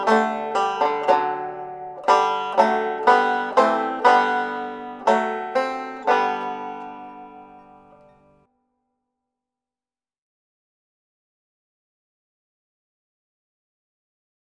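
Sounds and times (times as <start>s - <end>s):
banjo: 0.0s - 8.5s.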